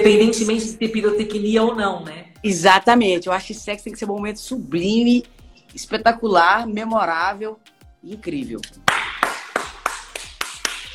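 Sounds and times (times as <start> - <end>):
speech: 0.0 - 8.8
hand clapping: 8.6 - 10.9.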